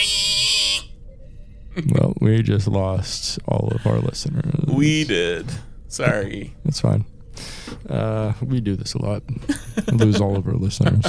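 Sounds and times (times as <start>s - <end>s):
voice imitating a pig squealing: 0.0s - 0.9s
speech: 1.8s - 11.0s
laughter: 9.5s - 11.0s.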